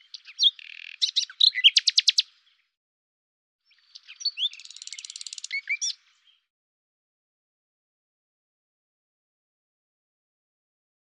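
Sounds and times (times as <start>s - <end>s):
common nightingale song: 0.0s - 2.8s, 3.6s - 6.5s.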